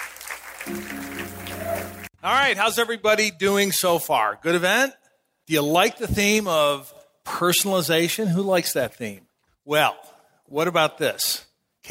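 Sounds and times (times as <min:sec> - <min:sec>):
audience applause welcoming speakers at a B2B marketing event: 0:00.0 - 0:02.2
speech: 0:00.7 - 0:01.4, 0:02.2 - 0:11.8.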